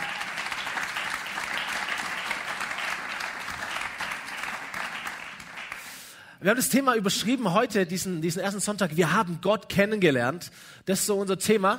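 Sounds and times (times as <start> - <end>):
crowd applause: 0.0 - 6.0
speech: 6.4 - 11.7.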